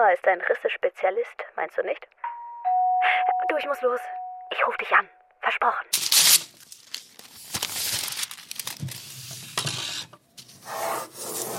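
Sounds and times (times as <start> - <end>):
speech: 0.0 - 2.3, 3.0 - 6.1
pen or pencil scratching on paper sketching an eleven-storey high-rise: 9.8 - 11.5.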